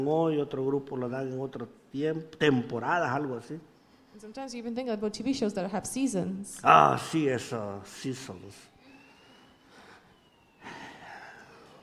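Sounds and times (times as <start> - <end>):
speech: 0.0 - 8.7
ambulance siren passing: 6.7 - 11.8.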